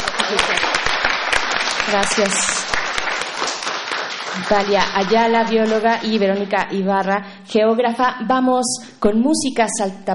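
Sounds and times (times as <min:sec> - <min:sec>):
audience applause: 0:00.0 - 0:06.6
speech: 0:01.9 - 0:02.8, 0:04.4 - 0:10.1.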